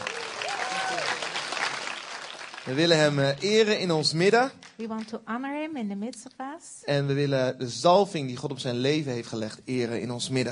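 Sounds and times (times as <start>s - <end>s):
audience applause: 0.0s - 4.0s
speech: 2.6s - 10.5s.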